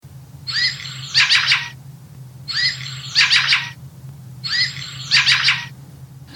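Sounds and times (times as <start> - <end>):
faint low hum: 0.0 - 6.3
fieldfare chattering chack calls: 0.5 - 1.8, 2.5 - 3.8, 4.4 - 6.3.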